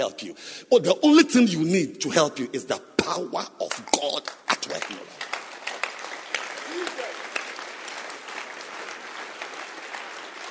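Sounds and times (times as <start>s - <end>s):
speech: 0.0s - 5.2s
audience clapping: 3.7s - 10.4s.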